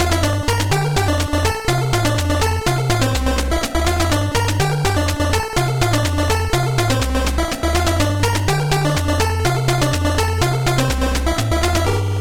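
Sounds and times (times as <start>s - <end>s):
8-bit rave music: 0.0s - 12.1s.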